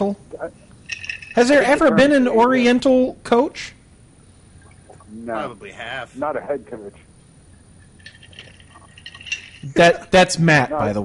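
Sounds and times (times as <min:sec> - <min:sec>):
speech: 0:01.4 - 0:03.8, 0:05.3 - 0:07.1, 0:09.6 - 0:11.0
ice clinking in a glass: 0:08.0 - 0:09.8.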